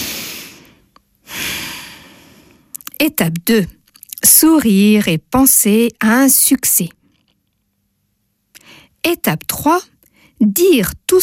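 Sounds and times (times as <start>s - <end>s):
deep breath in: 0.0s - 2.7s
speech: 3.0s - 7.0s, 9.0s - 11.2s.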